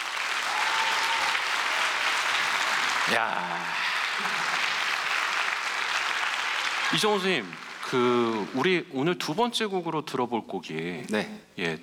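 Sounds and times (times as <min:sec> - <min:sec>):
audience applause: 0:00.0 - 0:08.8
speech: 0:03.1 - 0:04.7, 0:06.9 - 0:11.8.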